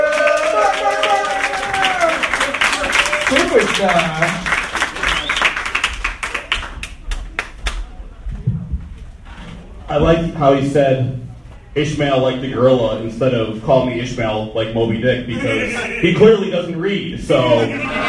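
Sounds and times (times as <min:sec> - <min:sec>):
audience applause for a comedian: 0:00.0 - 0:07.8
speech: 0:03.8 - 0:04.5, 0:09.9 - 0:18.0
laughter: 0:15.3 - 0:16.6, 0:17.3 - 0:18.0.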